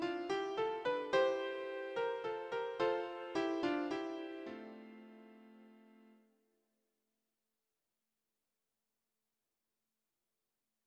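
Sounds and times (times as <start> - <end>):
piano sample: 0.0 - 6.2.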